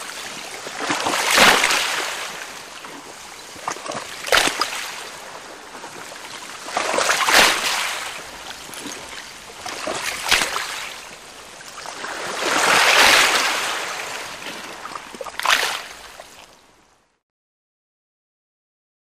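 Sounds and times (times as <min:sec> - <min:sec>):
slow canoe paddling: 0:00.0 - 0:17.1.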